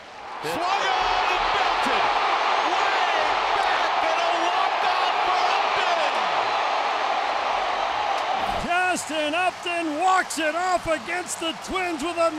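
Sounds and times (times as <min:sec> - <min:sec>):
baseball stadium crowd cheering: 0:00.0 - 0:12.3
speech: 0:00.4 - 0:01.1, 0:09.3 - 0:12.3.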